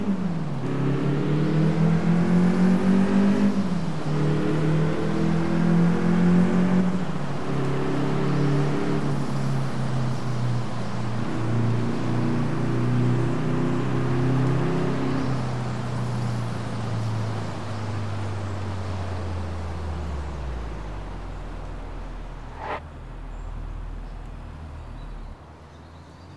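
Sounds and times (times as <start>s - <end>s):
Audi A6 4.2 quattro car engine: 0.0s - 26.3s.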